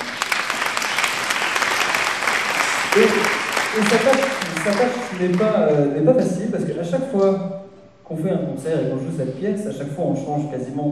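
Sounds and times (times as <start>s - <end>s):
audience applauding: 0.0s - 5.8s
speech: 2.9s - 10.8s.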